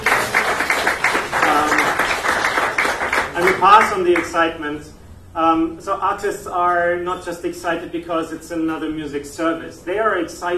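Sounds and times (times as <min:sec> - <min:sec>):
audience applause: 0:00.0 - 0:04.2
speech: 0:03.6 - 0:10.5.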